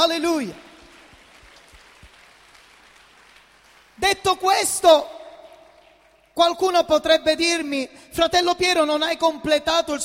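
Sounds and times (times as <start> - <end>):
speech: 0.0 - 0.7, 4.0 - 5.2, 6.4 - 10.0
church congregation faint applause: 0.4 - 4.0.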